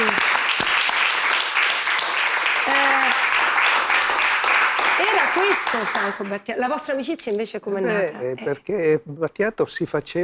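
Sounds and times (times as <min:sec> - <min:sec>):
audience applause: 0:00.0 - 0:06.4
person whooping: 0:02.6 - 0:03.2
speech: 0:05.4 - 0:10.2.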